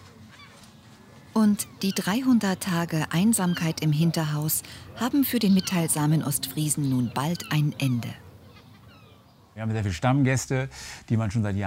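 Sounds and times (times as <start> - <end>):
speech: 1.4 - 8.2, 9.6 - 11.6
seagull calling in a quiet street in Warnemünde: 1.4 - 9.5.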